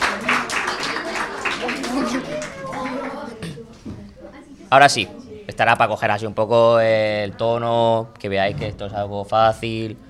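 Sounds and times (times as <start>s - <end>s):
audience clapping: 0.0s - 3.4s
speech: 4.7s - 10.0s.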